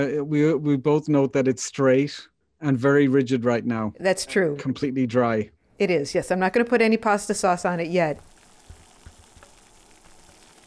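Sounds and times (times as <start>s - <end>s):
speech: 0.0s - 8.3s
water starting to boil in a pot: 6.1s - 10.6s.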